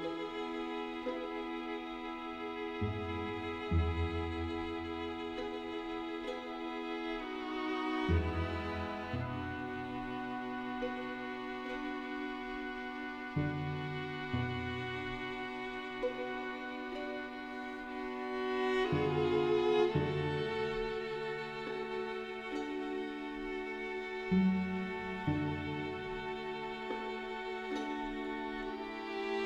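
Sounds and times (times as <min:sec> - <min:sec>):
string quartet playing: 0:00.0 - 0:29.4.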